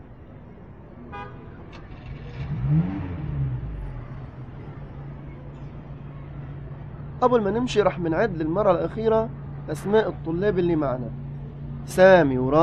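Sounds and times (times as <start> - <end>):
school bus engine revving as it starts off: 1.7 - 6.0
speech: 7.2 - 11.2, 11.9 - 12.6.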